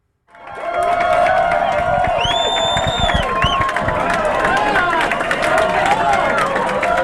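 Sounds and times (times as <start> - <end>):
whoops and shrieks: 0.3 - 4.2
clapping: 0.3 - 7.0
crowd cheering at election watch party: 0.3 - 7.0.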